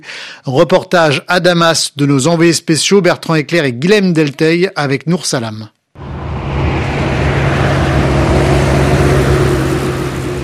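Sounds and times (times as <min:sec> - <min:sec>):
speech: 0:00.0 - 0:05.8
traffic at a main road interchange: 0:06.0 - 0:10.4.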